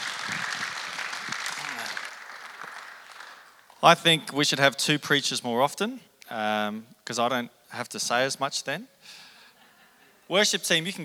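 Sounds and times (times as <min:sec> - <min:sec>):
audience applause: 0:00.0 - 0:03.8
speech: 0:03.8 - 0:09.2, 0:10.3 - 0:11.0.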